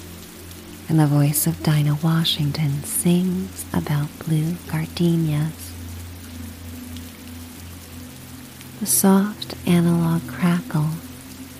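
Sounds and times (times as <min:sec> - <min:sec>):
storm rain hissing: 0:00.0 - 0:11.5
speech: 0:00.9 - 0:05.7, 0:08.8 - 0:11.0.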